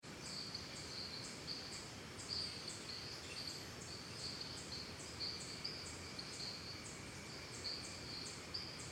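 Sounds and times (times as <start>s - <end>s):
crickets trilling: 0.0s - 8.8s.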